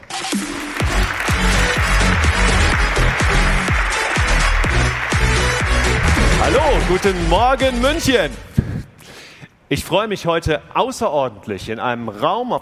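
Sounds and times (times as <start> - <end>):
large audience applause: 0.0 - 7.9
speech: 6.5 - 8.5, 9.7 - 12.6.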